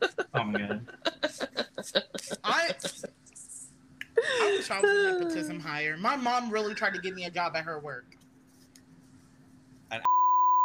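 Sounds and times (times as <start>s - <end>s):
speech: 0.0s - 1.0s, 4.7s - 8.1s
laughter: 0.0s - 3.1s, 4.2s - 5.6s, 6.5s - 7.1s
censor bleep: 10.1s - 10.6s.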